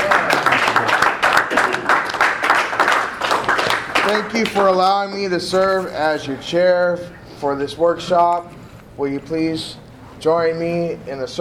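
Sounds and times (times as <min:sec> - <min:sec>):
roomful of people clapping together: 0:00.0 - 0:04.8
speech: 0:04.1 - 0:11.3.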